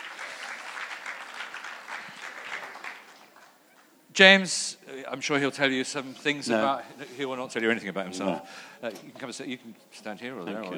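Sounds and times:
audience applause: 0:00.0 - 0:03.9
speech: 0:04.2 - 0:10.7.

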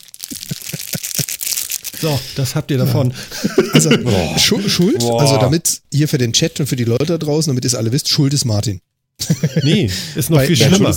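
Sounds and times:
crackling, crinkling of handled material: 0:00.0 - 0:02.1
speech: 0:02.0 - 0:10.9
laughter: 0:03.2 - 0:05.4, 0:09.2 - 0:10.8.

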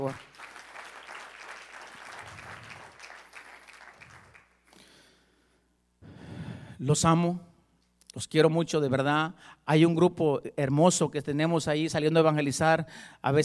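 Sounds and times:
speech: 0:00.0 - 0:00.3, 0:06.8 - 0:07.5, 0:08.2 - 0:13.4
audience applause: 0:00.0 - 0:04.6.

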